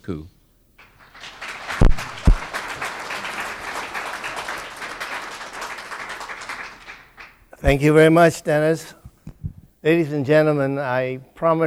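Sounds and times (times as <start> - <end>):
speech: 0.0 - 0.4, 7.6 - 9.0, 9.8 - 11.6
audience applause welcoming panel speakers: 0.8 - 7.9.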